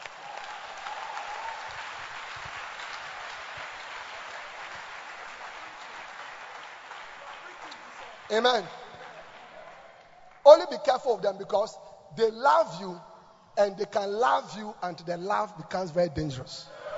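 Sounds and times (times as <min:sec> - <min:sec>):
audience applause: 0:00.0 - 0:10.4
speech: 0:08.3 - 0:08.8, 0:10.4 - 0:16.8.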